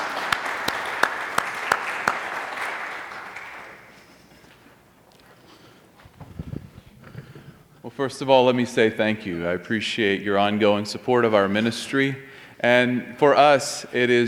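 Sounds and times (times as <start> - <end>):
audience applause in church: 0.0 - 4.0
speech: 7.9 - 14.2.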